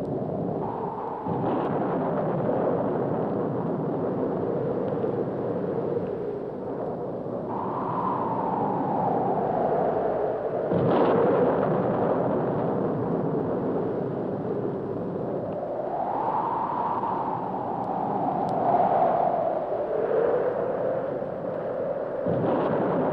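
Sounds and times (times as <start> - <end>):
wind: 0.0 - 23.1
thunder: 0.5 - 5.4, 10.6 - 15.4, 22.2 - 23.1.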